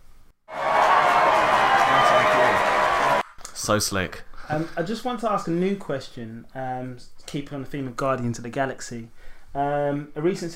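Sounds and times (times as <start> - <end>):
applause sound effect played from keyboard: 0.5 - 3.2
speech: 3.7 - 10.5.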